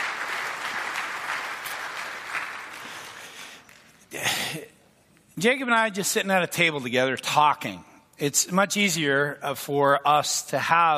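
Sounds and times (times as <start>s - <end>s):
audience applause: 0.0s - 4.0s
speech: 5.4s - 10.9s.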